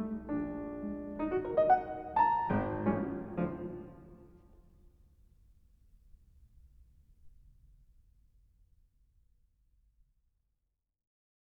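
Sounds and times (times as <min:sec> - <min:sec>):
piano: 0:00.0 - 0:05.0.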